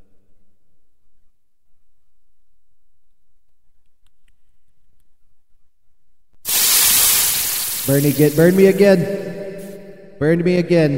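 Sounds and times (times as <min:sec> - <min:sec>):
sipping hot coffee: 0:06.5 - 0:08.6
speech: 0:07.9 - 0:09.3, 0:10.2 - 0:10.9.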